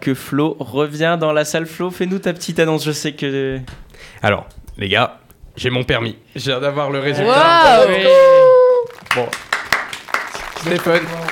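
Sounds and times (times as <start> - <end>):
speech: 0.0 - 8.5, 9.2 - 9.4, 10.6 - 11.2
studio applause: 8.9 - 11.2.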